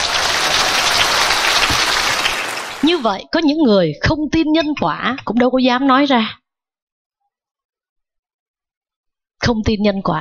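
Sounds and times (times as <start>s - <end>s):
applause in a Buddhist temple for blind visitors: 0.0s - 3.1s
speech: 3.0s - 6.4s, 9.4s - 10.1s.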